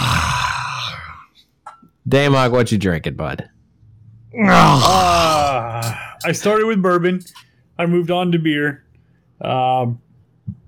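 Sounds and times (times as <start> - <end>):
person burping: 0.0 - 1.2, 4.4 - 6.2
speech: 2.1 - 3.6, 4.3 - 8.8, 9.4 - 10.6.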